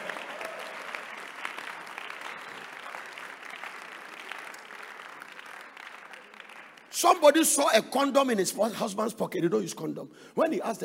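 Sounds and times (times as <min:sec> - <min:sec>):
crowd, audience clapping: 0:00.0 - 0:07.6
speech: 0:07.0 - 0:10.8.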